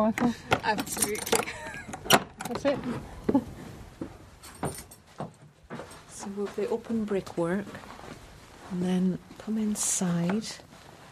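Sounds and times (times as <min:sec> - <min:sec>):
speech: 0:00.0 - 0:03.4, 0:06.3 - 0:07.9, 0:08.7 - 0:10.7
enormous old key unlocking a plank church door on Romney Marsh: 0:00.7 - 0:02.8.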